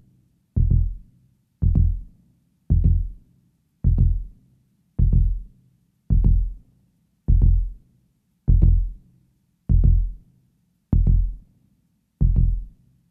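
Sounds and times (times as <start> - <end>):
heartbeat: 0.6 - 1.0, 1.6 - 2.1, 2.7 - 3.2, 3.8 - 4.3, 5.0 - 5.5, 6.1 - 6.6, 7.3 - 7.8, 8.5 - 9.0, 9.7 - 10.2, 11.0 - 11.4, 12.2 - 12.7.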